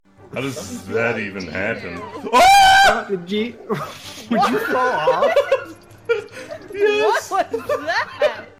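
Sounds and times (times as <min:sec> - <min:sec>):
laughter: 0:00.4 - 0:02.9, 0:03.7 - 0:08.5
person screaming: 0:02.3 - 0:03.0.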